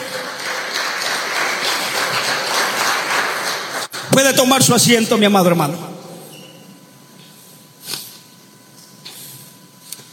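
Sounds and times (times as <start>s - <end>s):
audience applause: 0.0s - 4.1s
speech: 4.2s - 5.9s.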